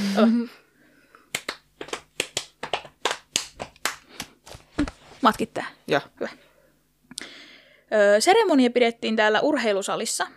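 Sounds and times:
speech: 0.2 - 0.6, 5.2 - 6.4, 7.9 - 10.3
rhythmic hand claps: 1.3 - 5.0.

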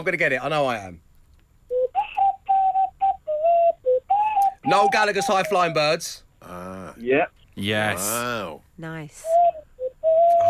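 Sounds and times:
speech: 0.0 - 1.1, 4.6 - 9.4
person whistling a song's tune: 1.7 - 5.6, 9.2 - 10.4.

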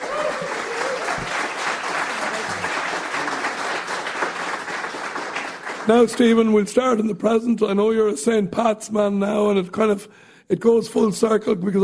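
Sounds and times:
crowd applauding: 0.0 - 6.4
speech: 5.9 - 11.8.

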